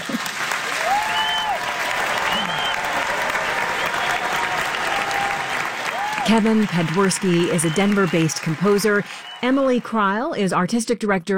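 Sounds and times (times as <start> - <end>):
standing ovation applause at Carnegie Hall: 0.0 - 10.0
faint whoops and cheers: 0.7 - 6.3
speech: 6.3 - 11.3.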